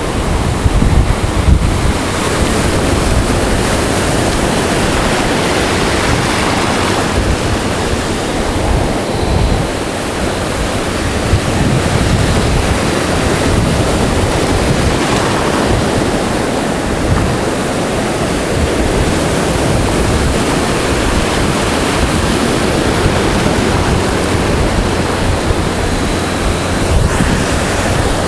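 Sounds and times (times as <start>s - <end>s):
ocean waves at Myrtle Beach: 0.0s - 28.2s.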